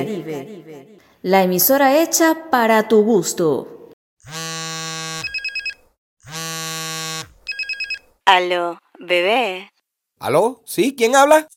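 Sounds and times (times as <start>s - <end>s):
speech: 0.0s - 4.4s, 8.3s - 11.5s
telephone ringing with buzzing electronic tone and chirping pulses: 4.9s - 6.0s, 7.2s - 8.1s.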